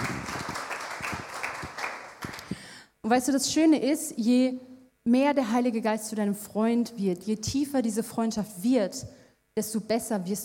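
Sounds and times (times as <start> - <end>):
faint applause for a performer: 0.0 - 2.6
speech: 3.1 - 10.4.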